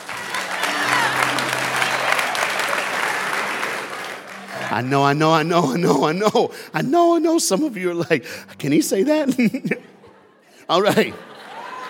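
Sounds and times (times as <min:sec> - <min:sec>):
voices cheering: 0:00.0 - 0:04.9
crowd clapping: 0:00.0 - 0:06.2
speech: 0:04.7 - 0:09.9, 0:10.7 - 0:11.3
laughter: 0:09.1 - 0:11.8.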